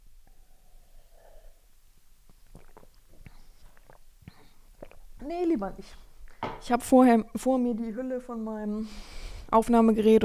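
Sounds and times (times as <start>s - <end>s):
sipping coffee: 2.3s - 5.2s
speech: 5.3s - 6.0s, 6.6s - 10.2s.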